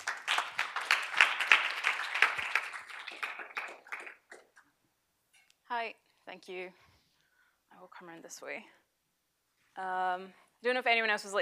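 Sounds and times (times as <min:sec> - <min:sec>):
audience applause welcoming a speaker: 0:00.0 - 0:04.7
speech: 0:05.8 - 0:06.9, 0:07.8 - 0:08.8, 0:09.8 - 0:11.4.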